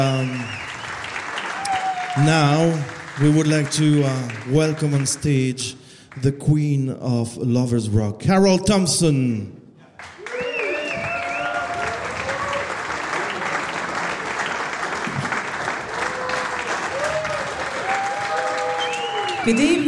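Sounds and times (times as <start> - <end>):
speech: 0.0 - 0.6, 2.2 - 10.1, 19.4 - 19.8
large concert audience applause: 0.0 - 5.5, 10.0 - 19.8
scattered cheers and whoops: 0.4 - 2.6, 10.2 - 13.4, 15.9 - 19.8.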